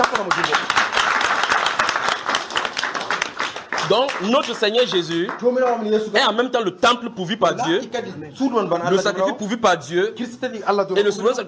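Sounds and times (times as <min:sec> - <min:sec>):
audience clapping: 0:00.0 - 0:06.3
speech: 0:03.9 - 0:11.4.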